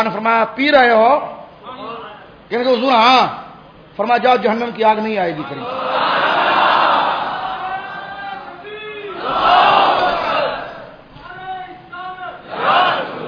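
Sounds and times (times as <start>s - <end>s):
speech: 0.0s - 1.4s, 2.5s - 3.4s, 4.0s - 6.1s
crowd chanting a slogan: 5.6s - 11.0s, 12.4s - 13.2s.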